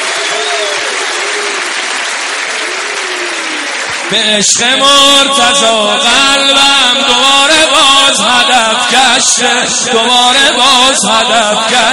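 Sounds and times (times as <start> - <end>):
audience applause: 0.0 - 4.6
speech: 4.1 - 11.9.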